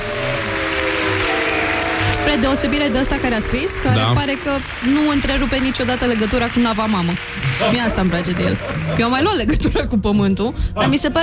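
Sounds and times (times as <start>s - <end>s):
audience applause: 0.0s - 9.4s
speech: 2.2s - 11.2s
laughter: 7.4s - 10.0s.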